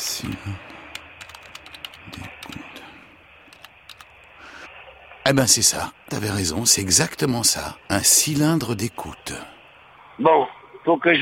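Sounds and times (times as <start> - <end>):
speech: 0.2 - 0.7, 5.3 - 9.6, 10.2 - 11.2
typing on a computer keyboard: 0.2 - 2.7, 3.5 - 4.2.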